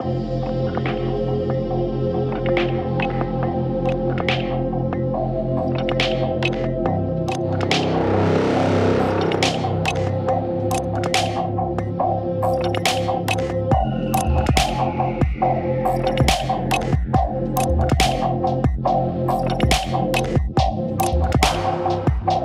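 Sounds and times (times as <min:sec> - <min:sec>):
ambient dubstep music: 0:00.0 - 0:22.4.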